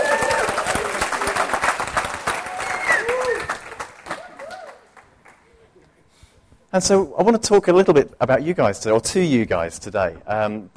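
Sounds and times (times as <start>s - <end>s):
audience applause: 0.0s - 5.5s
speech: 6.8s - 10.7s.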